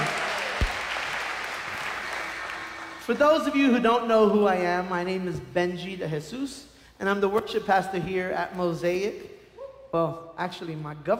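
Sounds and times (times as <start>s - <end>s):
audience round of applause: 0.0s - 3.5s
speech: 3.1s - 9.3s, 9.9s - 11.1s.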